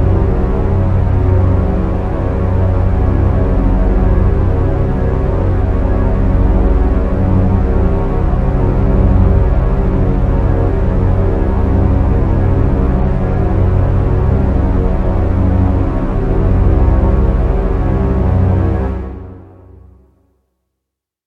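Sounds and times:
long horror synth strings drone stab: 0.0 - 19.7.

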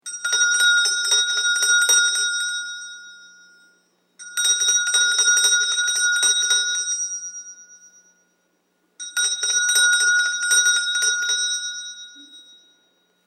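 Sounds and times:
Indian bells: 0.0 - 13.2.

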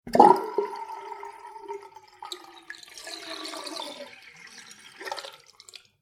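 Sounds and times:
water draining from a full small household sink after plug pulled: 0.1 - 5.9.

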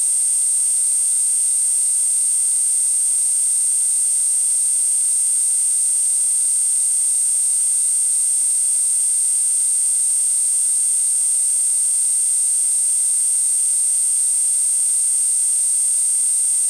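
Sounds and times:
high-pitched sci-fi electrical ballast buzz hum: 0.0 - 16.6.

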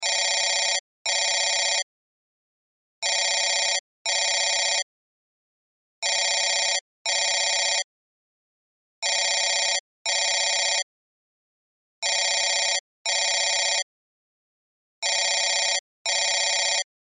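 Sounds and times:
cell phone ringtone: 0.0 - 1.9, 3.0 - 4.9, 6.0 - 7.9, 9.0 - 10.9, 12.0 - 13.9, 15.0 - 16.9.

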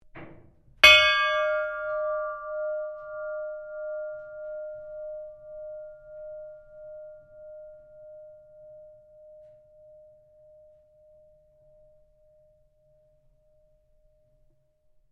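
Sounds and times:
iron ship's bell ringing: 0.8 - 9.6.

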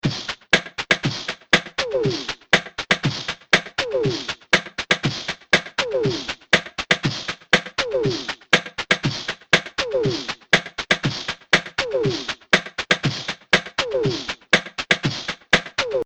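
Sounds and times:
vocal beatbox loop at 120 bpm: 0.0 - 16.0.

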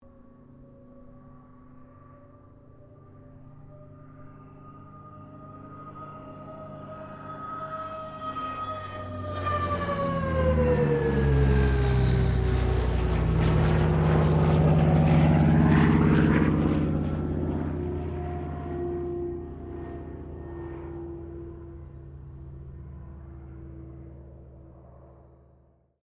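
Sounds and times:
CA-13 Boomerang aircraft passing: 0.0 - 25.9.

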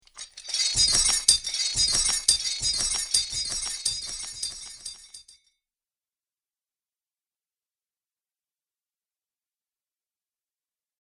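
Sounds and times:
metal chains: 0.0 - 5.4.

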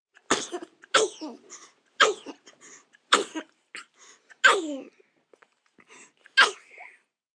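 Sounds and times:
baby sneezing fit: 0.3 - 2.4, 3.1 - 4.9, 6.4 - 6.9.

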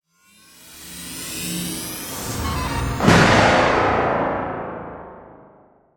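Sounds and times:
science fiction weapon blast: 2.3 - 5.6.

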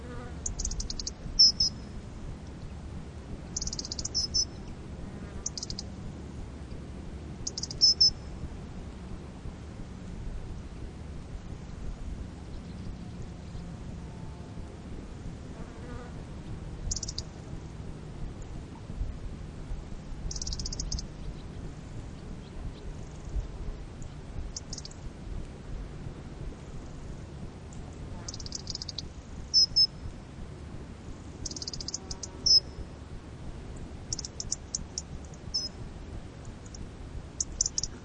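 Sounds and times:
insects: 0.0 - 8.8, 9.9 - 38.0
faint ocean: 0.0 - 38.0
small birds tweeting by the sea: 0.4 - 1.9, 3.6 - 4.8, 5.4 - 5.9, 7.4 - 8.3, 16.4 - 17.4, 20.3 - 25.1, 28.2 - 30.0, 31.4 - 32.8, 34.1 - 35.8, 37.4 - 38.0.

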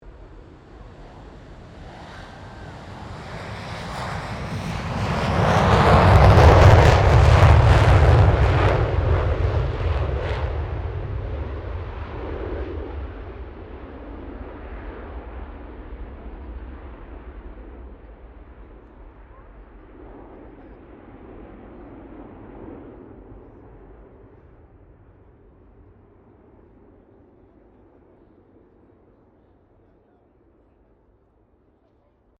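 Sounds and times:
FA-18 Hornet aircraft taking off: 0.1 - 24.0.

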